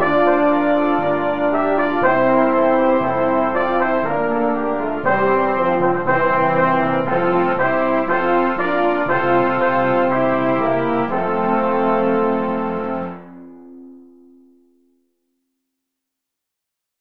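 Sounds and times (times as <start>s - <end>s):
hymn: 0.0s - 13.3s.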